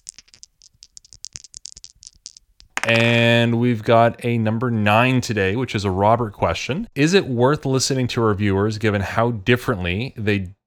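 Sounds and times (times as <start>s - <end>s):
dice rattling and clattering: 0.0s - 3.2s
speech: 2.8s - 10.6s.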